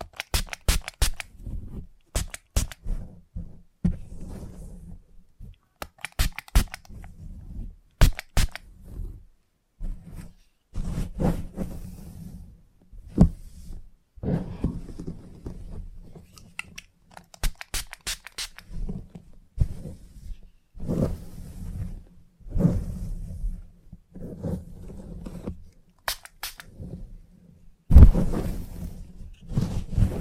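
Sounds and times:
salon scissors snipping: 0.0s - 1.3s, 2.1s - 2.8s, 5.8s - 7.0s, 8.0s - 8.6s, 16.4s - 18.6s, 26.1s - 26.7s
soft head massage rubbing and brushing: 0.0s - 30.2s.

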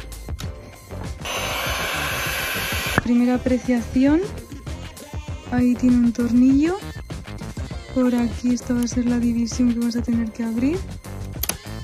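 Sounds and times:
electric hand mixer running: 1.2s - 3.1s
speech: 3.1s - 4.4s, 5.5s - 7.0s, 8.0s - 11.0s.

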